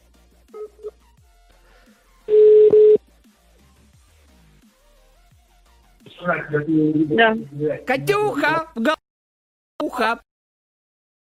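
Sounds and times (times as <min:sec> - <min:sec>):
telephone tones while redialing a number: 0:02.3 - 0:03.0
speech: 0:06.3 - 0:09.0, 0:10.0 - 0:10.3.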